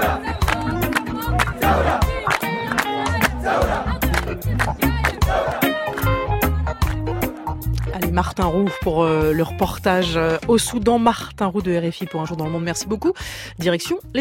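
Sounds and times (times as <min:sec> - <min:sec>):
crowd chanting at a night-time sit-in: 0:00.0 - 0:06.2
rhythmic clapping or drumming beats: 0:00.0 - 0:12.5
speech: 0:08.2 - 0:14.1.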